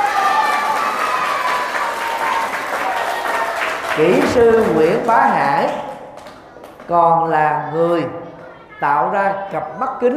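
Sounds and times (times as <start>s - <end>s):
children applauding loudly: 0.0s - 6.9s
speech: 4.0s - 5.8s, 6.9s - 10.1s.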